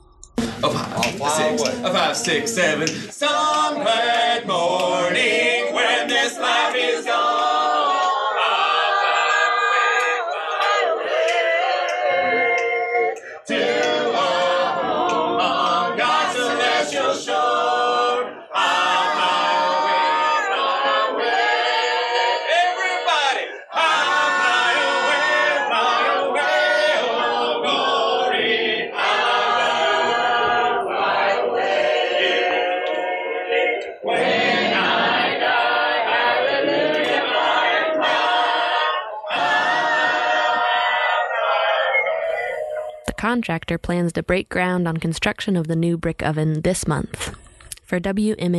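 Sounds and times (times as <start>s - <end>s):
crowd group sing-along in harmony: 0.0s - 43.1s
speech: 0.6s - 5.4s, 43.4s - 48.5s.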